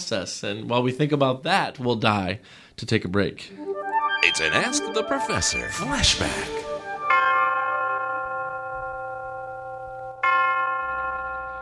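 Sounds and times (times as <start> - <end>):
speech: 0.1 - 6.7
university tower chimes ringing: 3.7 - 11.6.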